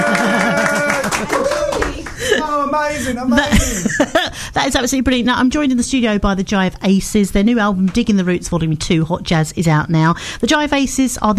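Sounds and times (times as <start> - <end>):
audience clapping: 0.0 - 2.5
laughter: 0.0 - 4.4
speech: 2.7 - 11.3.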